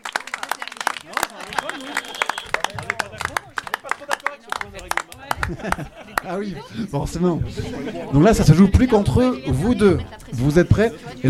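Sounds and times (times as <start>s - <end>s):
audience applause: 0.0s - 6.4s
overlapping voices and cheers: 0.0s - 6.4s
laughter: 0.2s - 8.8s
speech: 5.5s - 11.2s.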